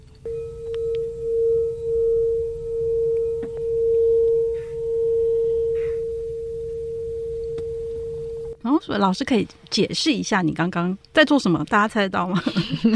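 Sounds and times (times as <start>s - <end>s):
singing bowl being rubbed around its rim: 0.3s - 8.6s
speech: 8.8s - 12.9s.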